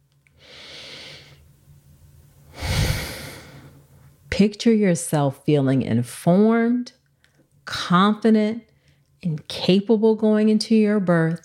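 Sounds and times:
guided deep breath: 0:00.4 - 0:01.4, 0:02.5 - 0:03.8
speech: 0:04.4 - 0:07.0, 0:07.7 - 0:11.4.

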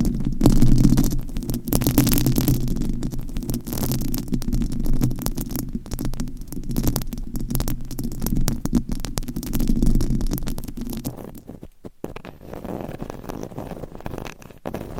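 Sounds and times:
microphone scratching and rubbing: 0:00.0 - 0:14.9.

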